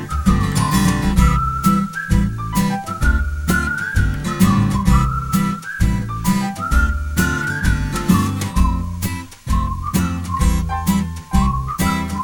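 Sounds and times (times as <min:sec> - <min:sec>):
person whistling: 0:00.0 - 0:12.2
footsteps strolling: 0:00.1 - 0:12.2.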